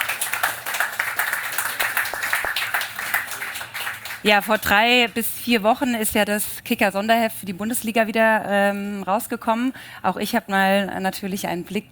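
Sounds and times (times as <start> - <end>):
audience applause: 0.0 - 4.4
speech: 4.2 - 11.8.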